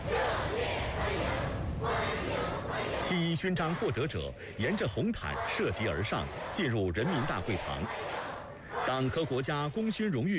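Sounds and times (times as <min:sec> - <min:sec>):
large crowd of young voices chanting welcoming cheers: 0:00.0 - 0:04.0, 0:05.2 - 0:09.5
speech: 0:03.1 - 0:08.2, 0:08.9 - 0:10.3.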